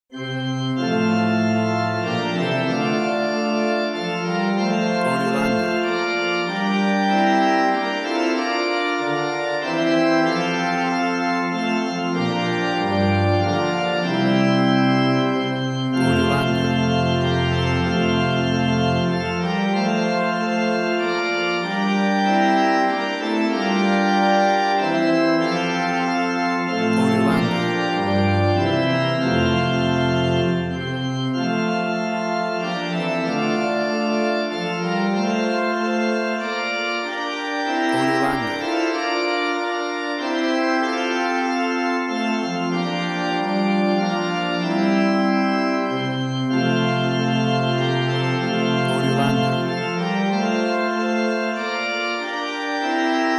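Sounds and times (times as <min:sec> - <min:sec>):
church organ playing a Christmas carol: 0:00.1 - 0:53.3.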